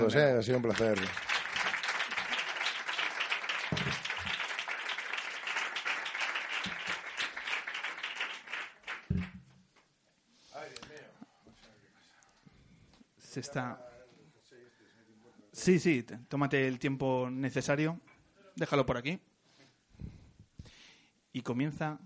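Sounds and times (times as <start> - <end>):
speech: 0.0 - 1.3, 13.4 - 13.9, 15.6 - 19.3, 21.4 - 22.0
audience applause: 0.0 - 9.3.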